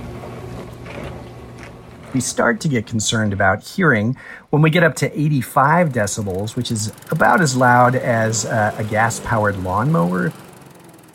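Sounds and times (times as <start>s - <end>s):
older dishwasher running: 0.0s - 4.1s, 4.7s - 11.1s
speech: 2.1s - 10.4s.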